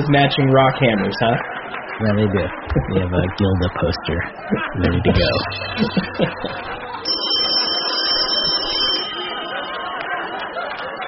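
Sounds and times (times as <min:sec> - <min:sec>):
speech: 0:00.0 - 0:06.8
chatter: 0:00.0 - 0:11.0
laughter: 0:00.0 - 0:11.0
telephone ringing with an electronic tone: 0:05.2 - 0:10.3.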